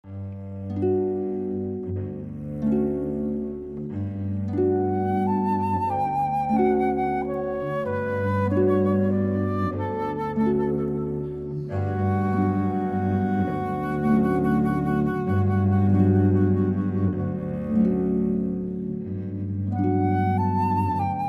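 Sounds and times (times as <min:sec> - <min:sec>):
cello: 0:00.0 - 0:21.2
flute: 0:00.0 - 0:21.2
harp: 0:00.0 - 0:21.2.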